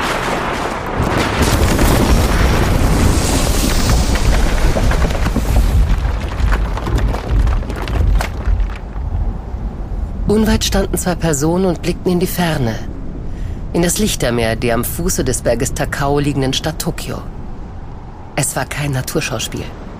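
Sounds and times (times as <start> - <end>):
mighty rumble of thunder: 0.0 - 9.9
speech: 10.3 - 12.9, 13.7 - 17.4, 18.4 - 19.8.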